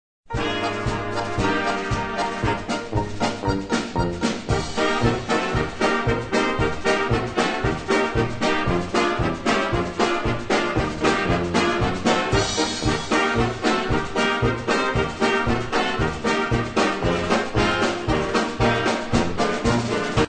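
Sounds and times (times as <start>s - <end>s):
polka music: 0.3s - 20.2s.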